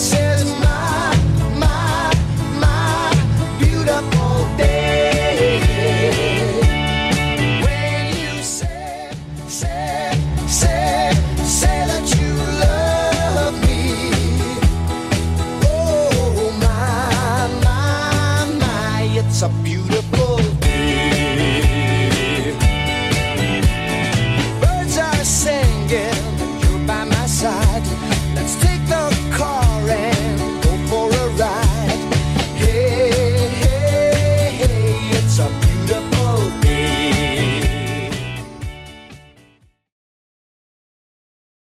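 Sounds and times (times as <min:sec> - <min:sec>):
1970s-style drum machine beat at 120 bpm: 0:00.0 - 0:18.9, 0:19.9 - 0:39.0.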